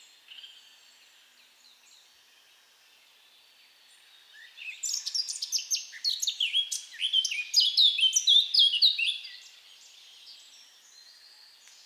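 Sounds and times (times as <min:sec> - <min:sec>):
Eurasian blackcap singing: 0:04.4 - 0:09.5.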